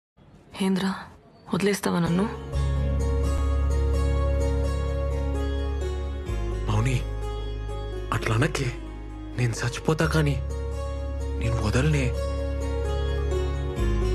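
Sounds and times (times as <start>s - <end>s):
Telugu emotional love music: 2.0s - 14.1s.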